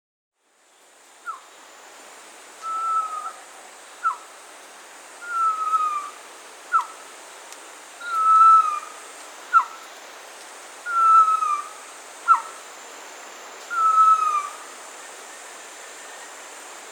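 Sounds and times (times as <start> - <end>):
pavonine quetzal calling: 2.6 - 3.4, 4.0 - 4.3, 5.2 - 7.0, 8.0 - 9.8, 10.9 - 12.6, 13.7 - 14.7.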